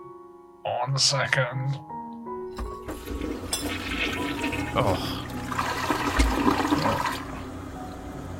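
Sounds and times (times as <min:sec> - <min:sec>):
speech: 0:00.9 - 0:01.9, 0:03.7 - 0:05.3
toilet flushing: 0:02.6 - 0:08.0.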